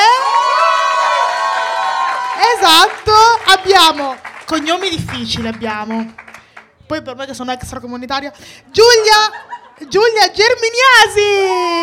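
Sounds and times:
audience cheering: 0.0 - 3.1
audience applause: 0.4 - 5.3
speech: 2.6 - 6.2, 6.9 - 11.8
laughter: 8.8 - 10.2.

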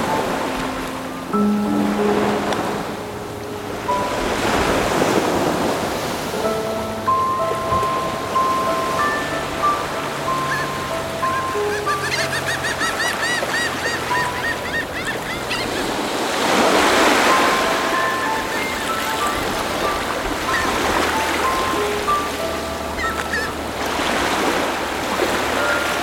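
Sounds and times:
Atlantic Ocean surf breaking on the Portuguese coast: 0.0 - 26.0
birds whistling and chirping: 6.5 - 26.0.

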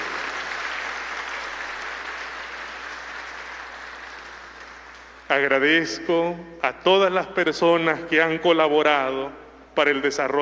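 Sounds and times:
audience applause: 0.0 - 5.2
speech: 5.3 - 10.4.

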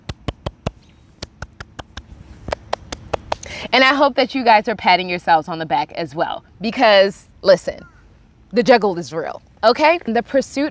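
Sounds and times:
single person clapping hands: 0.0 - 3.5
speech: 3.7 - 7.9, 8.5 - 10.6.

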